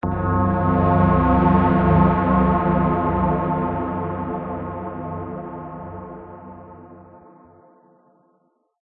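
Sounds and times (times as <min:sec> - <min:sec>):
night ambient stinger: 0:00.0 - 0:07.0.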